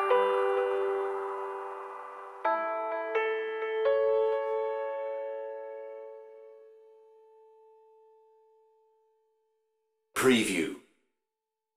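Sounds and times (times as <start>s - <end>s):
chill out dream music: 0.0s - 8.6s.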